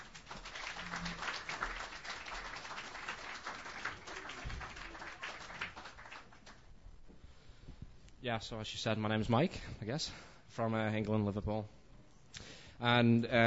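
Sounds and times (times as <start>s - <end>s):
audience applause at a Sunday open mic night: 0.0s - 6.6s
speech: 8.2s - 11.8s, 12.8s - 13.4s.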